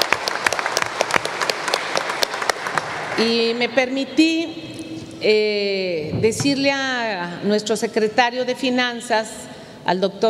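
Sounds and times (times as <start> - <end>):
audience applause: 0.0 - 3.2
speech: 3.2 - 4.6, 5.2 - 10.2.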